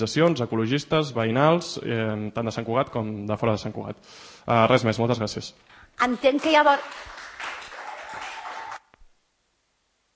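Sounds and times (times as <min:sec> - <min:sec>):
speech: 0:00.0 - 0:07.2
audience applause after a manifesto reading: 0:06.0 - 0:08.9.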